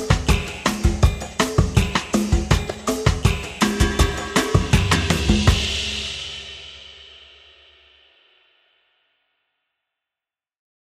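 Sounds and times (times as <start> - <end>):
Latin pop percussion groove: 0.0 - 7.6.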